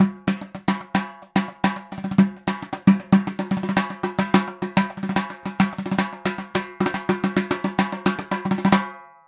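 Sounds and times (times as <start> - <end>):
dhol loop: 0.0 - 9.0.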